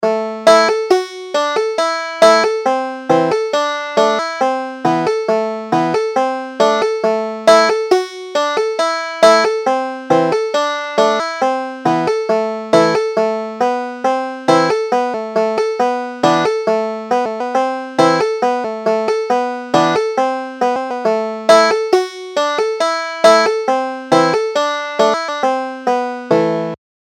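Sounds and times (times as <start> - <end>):
banjo playing a carol: 0.0 - 26.8.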